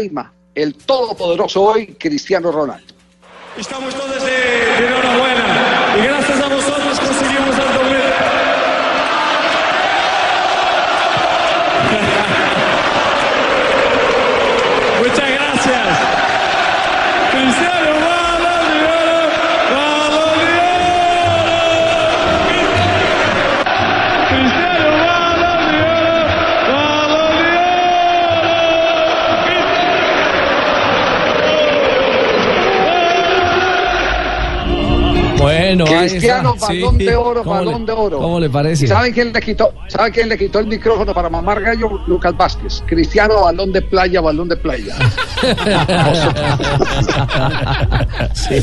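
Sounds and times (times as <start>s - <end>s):
speech: 0.0s - 3.0s, 3.6s - 8.4s, 35.8s - 48.6s
stadium crowd roaring and chanting at the Santiago Bernabéu: 3.2s - 37.8s
laughter: 11.3s - 14.0s, 44.7s - 48.6s.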